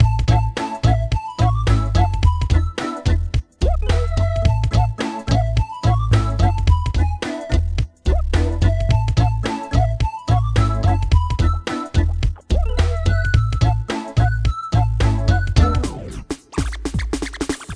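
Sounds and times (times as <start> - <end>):
music: 0.0 - 17.7.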